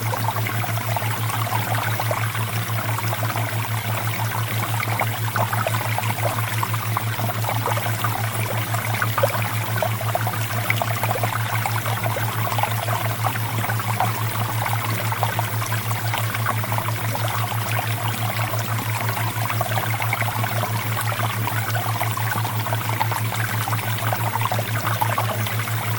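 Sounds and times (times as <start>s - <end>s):
flowing water: 0.0s - 25.9s.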